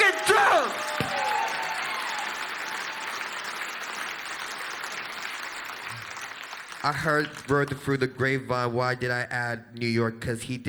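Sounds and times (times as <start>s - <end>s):
high whoops: 0.0s - 3.4s
concert crowd cheering and applauding: 0.0s - 7.7s
speech: 6.8s - 10.6s.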